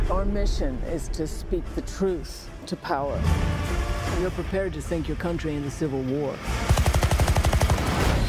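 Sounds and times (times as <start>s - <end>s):
speech: 0.1s - 6.8s
automatic gunfire in a film trailer for A Private War: 6.6s - 8.2s.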